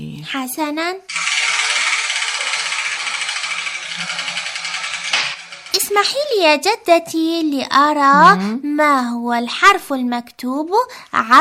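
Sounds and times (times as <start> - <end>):
speech: 0.3 - 1.2, 5.9 - 11.3
balls rattling inside a spinning drum: 1.1 - 6.4.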